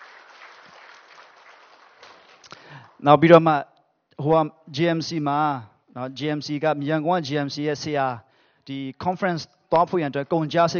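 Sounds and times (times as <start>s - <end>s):
church congregation clapping in praise to God: 0.0s - 3.0s
speech: 3.0s - 10.7s.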